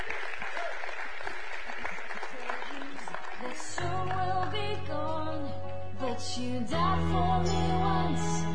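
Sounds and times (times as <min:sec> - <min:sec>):
audience clapping hands: 0:00.0 - 0:06.0
speech: 0:06.2 - 0:08.4.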